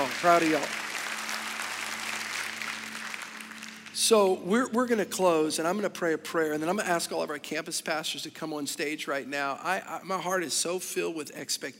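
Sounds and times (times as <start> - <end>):
audience applause: 0.0 - 4.0
speech: 0.2 - 0.8, 4.0 - 11.7.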